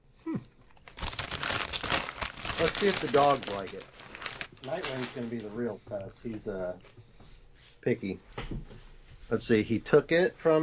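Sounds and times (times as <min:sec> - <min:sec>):
crunching popcorn while eating: 0:00.4 - 0:05.6
speech: 0:02.6 - 0:07.1, 0:07.8 - 0:08.7, 0:09.3 - 0:10.6.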